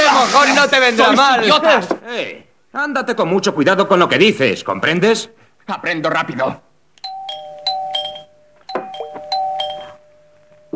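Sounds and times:
speech: 0:00.6 - 0:06.7
doorbell ringing: 0:07.0 - 0:10.7.

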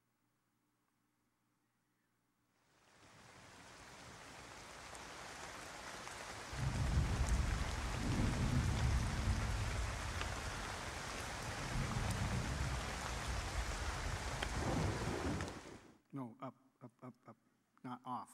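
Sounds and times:
steady rain sound effect: 0:02.7 - 0:16.0
deep thunder rumbling sound effect: 0:06.6 - 0:15.8.

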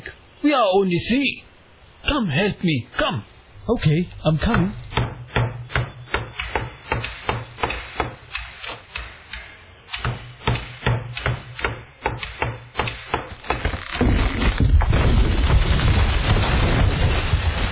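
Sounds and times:
speech: 0:00.4 - 0:04.8
hammer pounding a wall in demolition: 0:04.4 - 0:14.1
wall crumbling rumble: 0:13.4 - 0:17.6.

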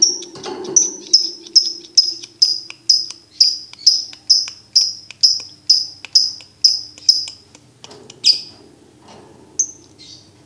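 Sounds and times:
lovebird chattering: 0:00.0 - 0:08.5.

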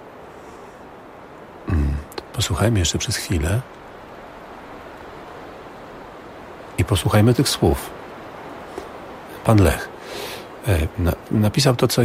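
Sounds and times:
wind blowing: 0:00.0 - 0:12.0
speech: 0:02.4 - 0:03.8, 0:06.8 - 0:08.0, 0:09.5 - 0:09.9, 0:10.6 - 0:12.0.

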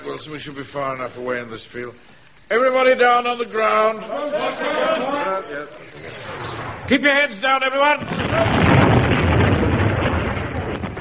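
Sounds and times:
speech: 0:00.1 - 0:08.8
explosion from nearby shooting in a field: 0:08.0 - 0:10.9.

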